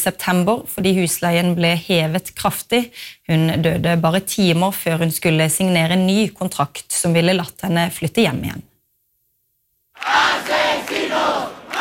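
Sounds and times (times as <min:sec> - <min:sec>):
speech: 0:00.0 - 0:08.7
crowd of protesters shouting and chanting: 0:10.0 - 0:11.7.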